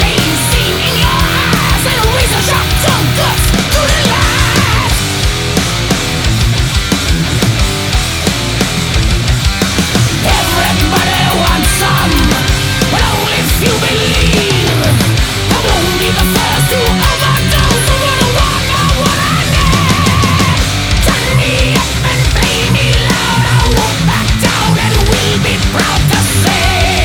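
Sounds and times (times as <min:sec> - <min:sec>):
distortion: 0:00.0 - 0:27.0.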